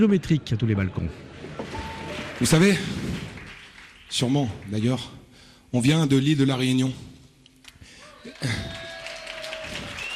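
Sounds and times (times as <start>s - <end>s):
speech: 0.0s - 1.3s, 2.4s - 3.0s, 4.1s - 7.1s, 8.2s - 8.8s
audience applause: 1.2s - 5.1s, 8.0s - 10.1s.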